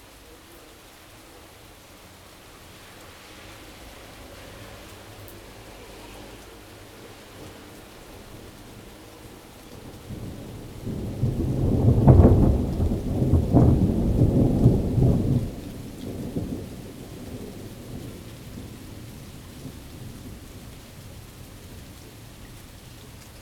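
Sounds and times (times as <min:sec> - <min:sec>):
rain in the city: 0:00.0 - 0:23.4
thunder in the city: 0:09.8 - 0:20.9.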